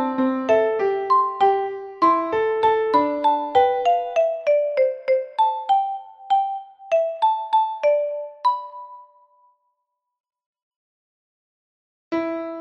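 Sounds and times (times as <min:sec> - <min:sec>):
instrumental backing music for singing: 0:00.0 - 0:09.5.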